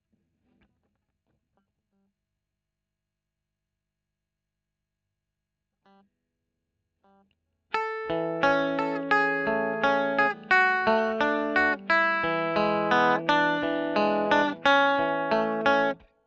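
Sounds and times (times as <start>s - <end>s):
electric guitar recorded with Royer microphone: 7.7s - 16.1s.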